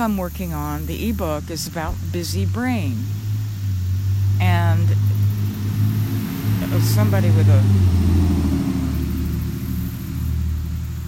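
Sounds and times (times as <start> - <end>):
speech: 0.0 - 3.2, 6.7 - 8.2
loud noisy truck driving past: 0.0 - 11.0.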